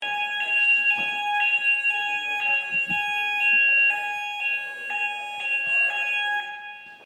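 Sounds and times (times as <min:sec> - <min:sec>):
fire alarm test: 0:00.0 - 0:07.0.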